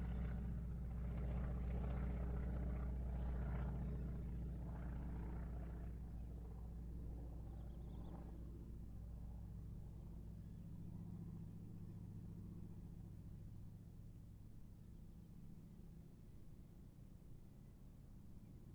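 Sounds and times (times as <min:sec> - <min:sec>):
AT-6D Harvard Mk III aircraft passing distant: 0:00.0 - 0:13.1.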